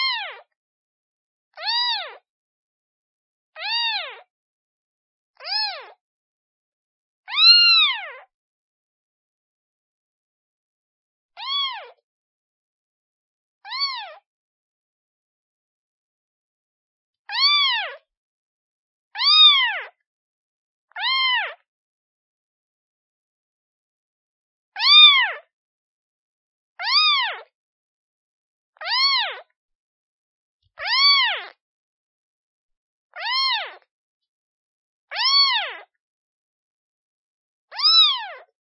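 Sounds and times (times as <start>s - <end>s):
kitten meowing calling for its mother: 0.0s - 0.4s, 1.6s - 2.2s, 3.6s - 4.2s, 5.4s - 6.0s, 7.3s - 8.2s, 11.4s - 12.0s, 13.7s - 14.2s, 17.3s - 18.0s, 19.2s - 19.9s, 21.0s - 21.6s, 24.8s - 25.3s, 26.8s - 27.5s, 28.8s - 29.4s, 30.8s - 31.5s, 33.2s - 33.8s, 35.1s - 35.9s, 37.7s - 38.4s.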